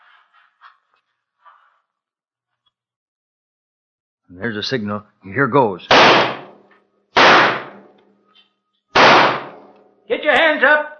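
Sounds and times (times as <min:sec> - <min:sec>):
speech: 0:04.3 - 0:06.3
gunshots: 0:05.9 - 0:06.6, 0:07.2 - 0:07.9, 0:09.0 - 0:09.7.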